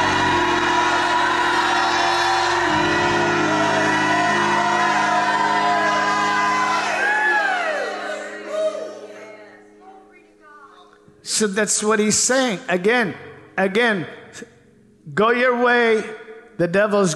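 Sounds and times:
audience shouting joyfully: 0.0 - 9.4
speech: 11.4 - 14.5, 15.1 - 17.1.

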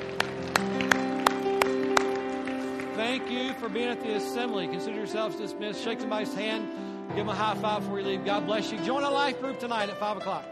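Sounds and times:
church congregation hand clapping: 0.0 - 4.7
speech: 3.0 - 10.5.

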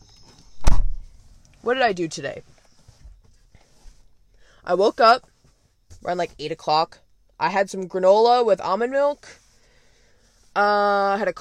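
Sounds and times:
door closing: 0.5 - 1.1
speech: 1.6 - 2.5, 4.7 - 5.3, 6.0 - 9.4, 10.6 - 11.3.

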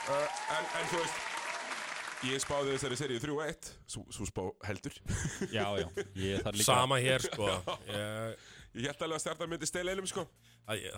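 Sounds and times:
hand clapping from a few people: 0.0 - 3.1
speech: 0.1 - 1.4, 2.2 - 10.9
laughter: 5.0 - 8.2.

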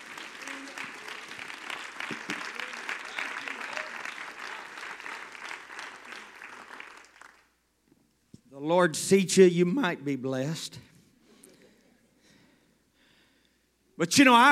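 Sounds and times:
audience clapping hands: 0.0 - 7.6
speech: 8.7 - 10.9, 14.0 - 14.5.

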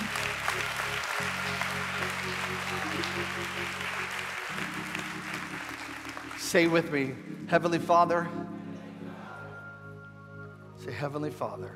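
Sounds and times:
crowd clapping in praise: 0.0 - 7.8
sustained low organ or keyboard chords: 0.0 - 11.7
speech: 6.5 - 8.4, 11.0 - 11.7.

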